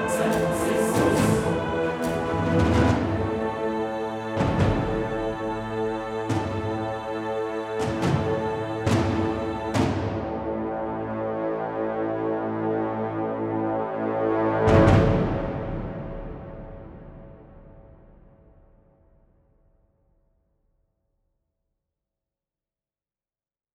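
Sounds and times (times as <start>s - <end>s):
apocalypse epic Latin choir soundtrack: 0.0s - 18.7s.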